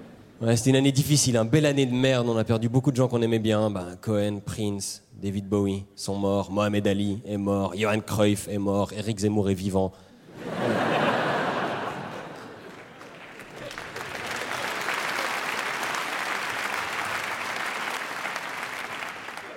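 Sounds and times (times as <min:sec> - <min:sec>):
speech: 0:00.4 - 0:10.1
audience laughter: 0:10.3 - 0:14.0
audience applause: 0:10.6 - 0:19.5.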